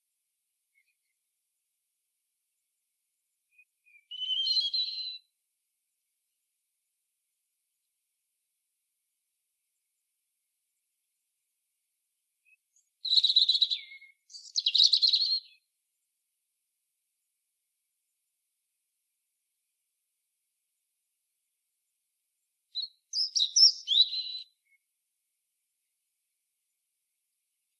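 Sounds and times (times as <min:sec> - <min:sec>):
European robin song: 0:00.0 - 0:01.8, 0:02.5 - 0:05.4, 0:12.0 - 0:16.0, 0:21.9 - 0:25.0.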